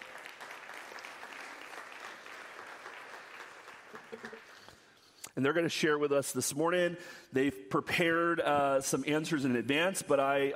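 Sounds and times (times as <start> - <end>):
faint audience applause in a church service: 0.0 - 4.7
speech: 4.1 - 4.5, 5.4 - 10.5.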